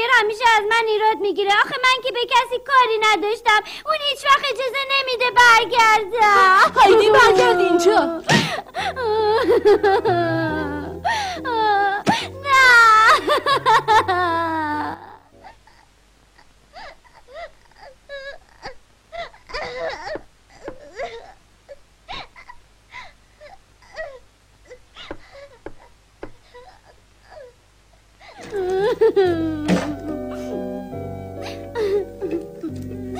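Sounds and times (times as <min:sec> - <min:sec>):
speech: 0:00.2 - 0:11.2, 0:28.9 - 0:29.9
young girl crying and sobbing: 0:01.6 - 0:27.6, 0:28.2 - 0:33.1
laughter: 0:06.2 - 0:15.0, 0:28.4 - 0:30.5.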